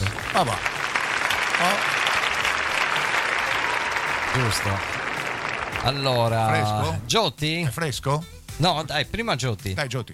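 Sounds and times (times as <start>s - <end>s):
applause: 0.0s - 6.6s
speech: 0.4s - 0.8s, 1.6s - 2.0s, 4.4s - 5.0s, 5.8s - 10.1s.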